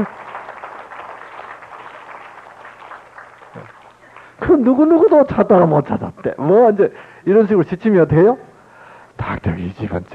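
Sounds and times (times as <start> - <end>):
speech: 0.0 - 0.2, 4.4 - 8.5, 9.2 - 10.1
crowd applause: 0.0 - 4.4.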